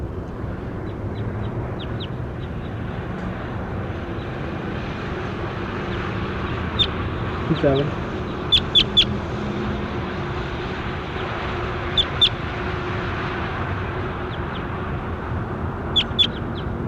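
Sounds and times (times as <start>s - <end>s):
low rumbling noise: 0.0s - 16.8s
bird chirping: 0.8s - 2.8s, 5.9s - 7.0s, 8.2s - 9.1s, 11.9s - 12.4s, 15.9s - 16.7s
speech: 7.5s - 8.0s.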